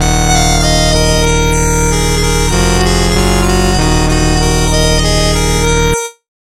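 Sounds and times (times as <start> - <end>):
game over jingle: 0.0 - 6.2.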